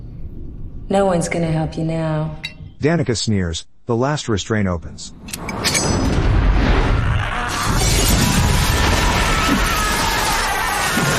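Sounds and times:
speech: 0.9 - 5.8
one-way glass mirror shattering: 5.4 - 6.4, 7.5 - 11.1
rumbling debris: 5.8 - 11.1.

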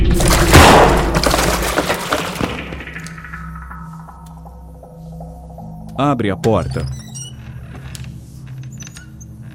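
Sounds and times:
gunshot fired upward: 0.2 - 1.3
speech: 6.0 - 7.0.

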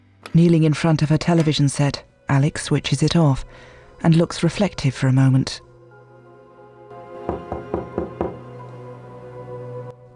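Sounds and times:
speech: 0.3 - 5.7
knocking on a door: 7.3 - 8.4.

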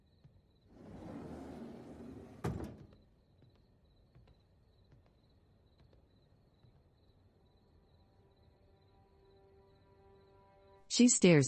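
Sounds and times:
sliding door being shut: 0.7 - 3.0
speech: 11.0 - 11.4.

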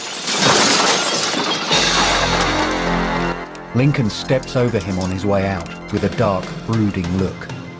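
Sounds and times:
glass shards tinkling: 0.0 - 3.0
glass doors shattering: 0.0 - 6.3
speech: 3.7 - 7.6.

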